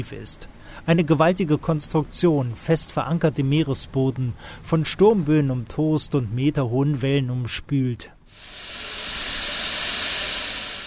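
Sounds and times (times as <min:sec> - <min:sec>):
speech: 0:00.0 - 0:08.6
natural gas hissing out under enormous pressure at an offshore platform: 0:08.3 - 0:10.8.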